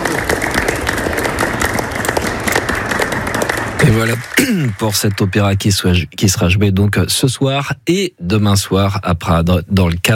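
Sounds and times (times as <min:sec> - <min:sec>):
audience applause: 0:00.0 - 0:06.1
speech: 0:03.9 - 0:10.1.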